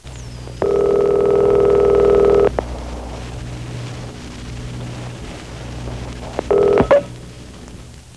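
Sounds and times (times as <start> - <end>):
telephone: 0.6 - 2.5, 6.5 - 7.1.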